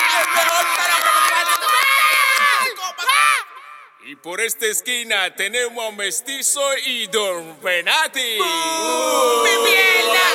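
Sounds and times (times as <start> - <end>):
audience applause: 0.0 - 2.7
speech: 4.2 - 10.3.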